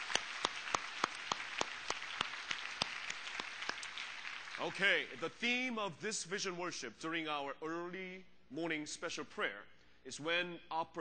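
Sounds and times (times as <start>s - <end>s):
church congregation clapping at an early-morning prayer service: 0.0s - 5.6s
speech: 4.6s - 10.9s.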